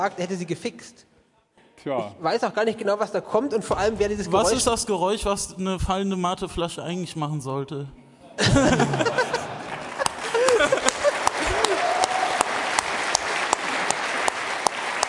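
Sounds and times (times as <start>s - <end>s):
speech: 0.0s - 1.1s, 1.8s - 9.2s
people whooping and laughing: 8.6s - 12.8s
crowd applause: 8.6s - 15.0s.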